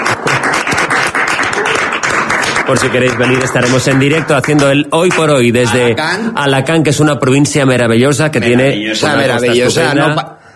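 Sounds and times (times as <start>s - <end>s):
studio audience clapping for Alicante: 0.0s - 5.9s
speech: 2.7s - 10.4s.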